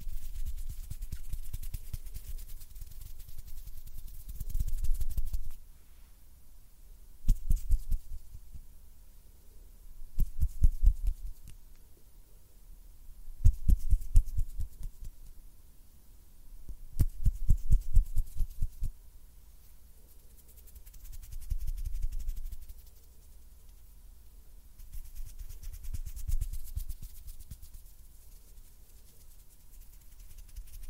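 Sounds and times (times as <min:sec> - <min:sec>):
close-up finger fluttering and hand sounds: 0:00.0 - 0:05.6, 0:07.3 - 0:08.6, 0:10.2 - 0:11.6, 0:13.4 - 0:15.3, 0:17.0 - 0:18.9, 0:20.1 - 0:23.9, 0:24.8 - 0:30.8
faint low hum: 0:00.0 - 0:30.8.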